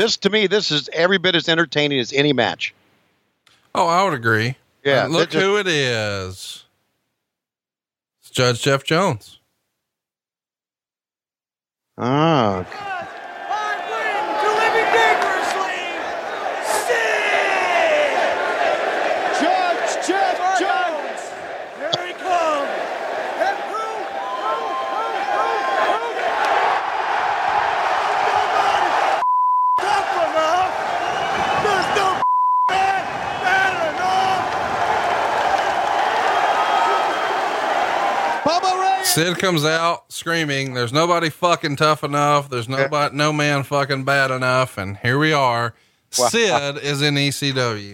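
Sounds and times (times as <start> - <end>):
speech: 0.0 - 2.8, 3.8 - 6.6, 8.4 - 9.4, 12.0 - 12.9, 39.1 - 47.9
wrestling crowd cheering a wrestler's entrance: 12.4 - 29.2, 29.8 - 39.5
high bleeps: 29.2 - 29.8, 32.2 - 32.8.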